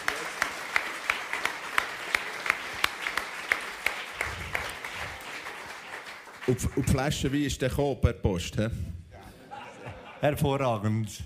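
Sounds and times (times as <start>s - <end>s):
audience applause: 0.0s - 7.6s
speech: 6.5s - 9.0s, 10.2s - 11.2s
laughter: 9.1s - 10.9s.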